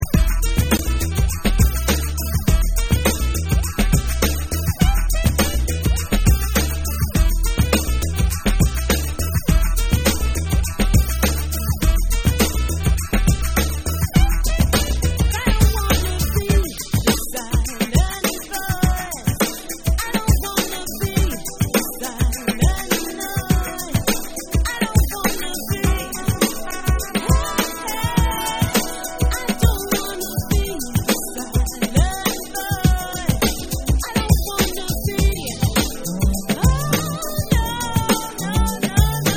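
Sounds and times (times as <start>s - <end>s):
saxophone: 0.0s - 39.3s.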